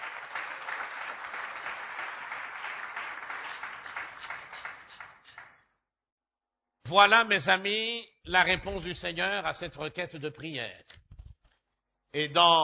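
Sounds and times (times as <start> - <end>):
church congregation applauding after a scripture reading: 0.0 - 5.6
speech: 6.9 - 11.0, 12.1 - 12.6.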